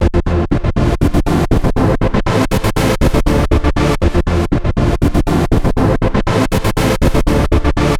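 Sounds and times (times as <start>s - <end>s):
trance synth: 0.0s - 7.9s.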